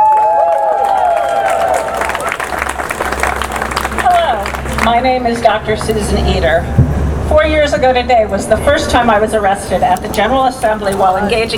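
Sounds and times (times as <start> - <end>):
audience applause: 0.0 - 5.0
speech: 4.9 - 11.5.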